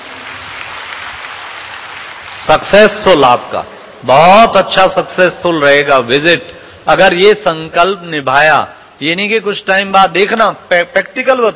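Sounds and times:
audience clapping for everyone at a gathering: 0.0s - 2.5s
speech: 2.4s - 11.5s.

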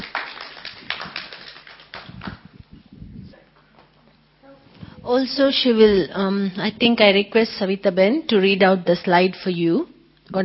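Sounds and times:
audience applauding to welcome a speaker: 0.0s - 2.4s
speech: 5.1s - 10.4s.

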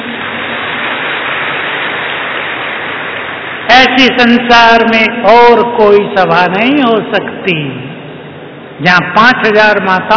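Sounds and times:
large crowd applauding: 0.0s - 3.7s
speech: 3.7s - 7.9s, 8.8s - 10.1s.

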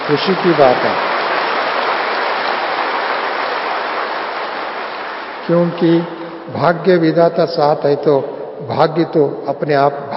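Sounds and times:
loud crowd applause: 0.0s - 6.4s
speech: 0.1s - 1.1s, 5.5s - 10.1s.

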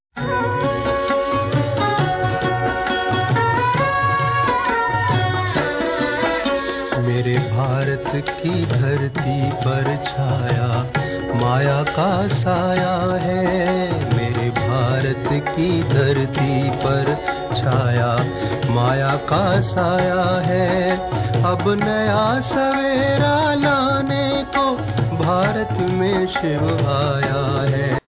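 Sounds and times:
devotional music: 0.2s - 28.0s.

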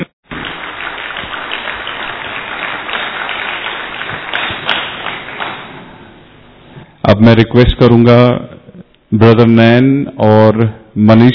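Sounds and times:
audience applause welcoming a speaker to the stage: 0.3s - 6.3s
speech: 7.1s - 8.5s, 9.1s - 11.3s.

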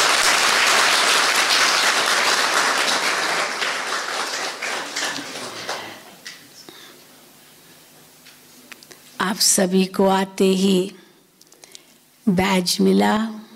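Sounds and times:
audience applause: 0.0s - 6.2s
speech: 9.3s - 11.0s, 12.3s - 13.4s.

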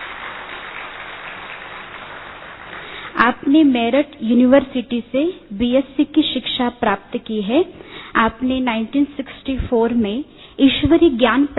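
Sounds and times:
audience applause welcoming a speaker onto the stage: 0.0s - 3.1s
speech: 3.5s - 11.5s.

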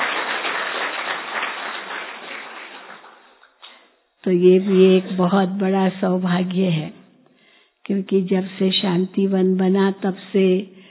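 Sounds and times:
audience clapping: 0.0s - 3.8s
speech: 4.2s - 7.0s, 7.9s - 10.7s.

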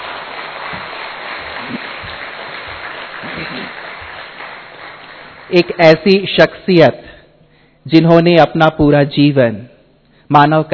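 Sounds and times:
loud applause: 0.0s - 5.7s
speech: 5.5s - 7.1s, 7.9s - 9.7s, 10.3s - 10.7s.

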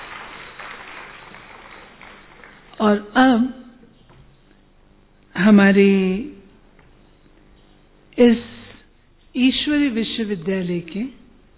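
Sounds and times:
audience clapping hands: 0.0s - 2.8s
speech: 2.8s - 3.6s, 5.4s - 6.3s, 8.2s - 8.6s, 9.4s - 11.2s.

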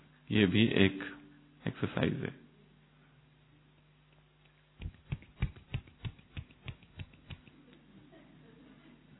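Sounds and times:
speech: 0.3s - 2.4s
one-handed finger clapping: 4.8s - 7.6s.

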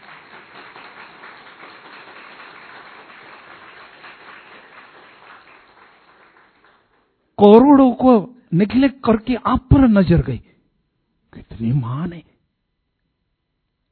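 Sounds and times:
audience clapping: 0.0s - 7.2s
speech: 7.4s - 10.5s, 11.4s - 12.3s.

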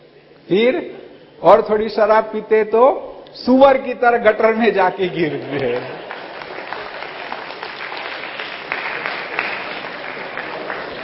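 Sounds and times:
speech: 0.5s - 6.1s
audience clapping: 5.0s - 11.0s.

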